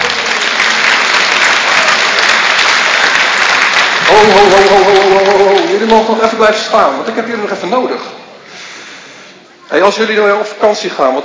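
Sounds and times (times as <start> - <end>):
group applauding after a sung hymn about God: 0.0 - 6.4
speech: 4.2 - 4.8, 5.9 - 8.2, 9.7 - 11.2.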